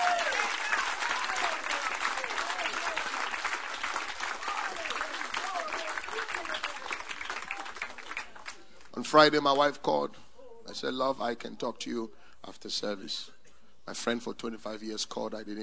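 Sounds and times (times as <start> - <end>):
audience clapping hands: 0.0 - 8.9
speech: 9.1 - 13.3, 13.9 - 15.6.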